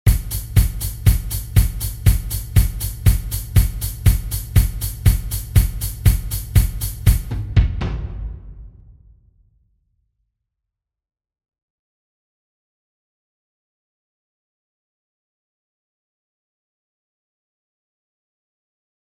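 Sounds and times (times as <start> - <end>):
pattern fill: 0.1 - 7.4.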